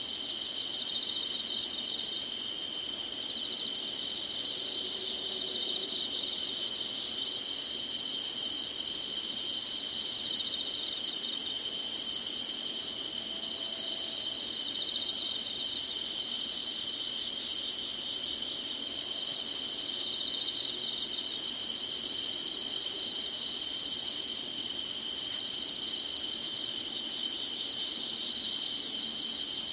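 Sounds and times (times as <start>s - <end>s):
insects trilling chorus: 0.0s - 29.7s.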